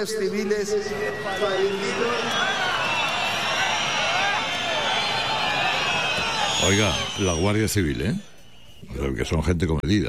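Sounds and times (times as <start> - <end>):
speech: 0.0 - 2.7, 6.6 - 10.0
crowd booing: 0.0 - 7.9.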